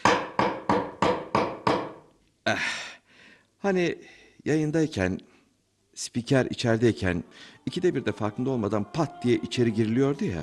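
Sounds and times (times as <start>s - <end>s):
nail being hammered into wood: 0.0s - 2.1s
speech: 2.5s - 2.8s, 3.6s - 5.3s, 6.0s - 10.4s.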